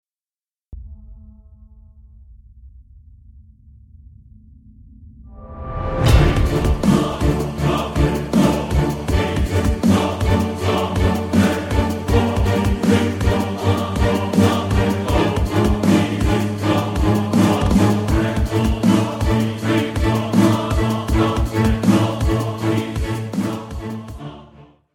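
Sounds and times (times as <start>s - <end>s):
electronic dub with choir: 6.1s - 24.6s.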